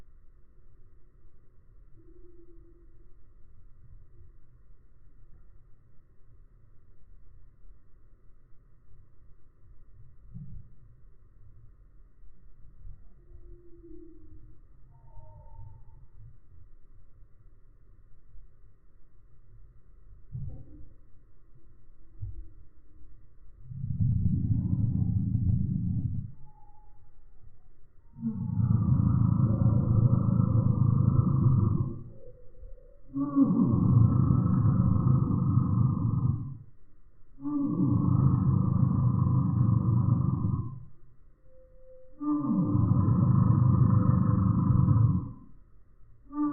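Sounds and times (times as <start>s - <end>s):
Eurasian bullfinch threat call: 23.6s - 26.5s, 28.1s - 36.7s, 37.4s - 41.0s, 42.1s - 45.6s, 46.3s - 46.5s.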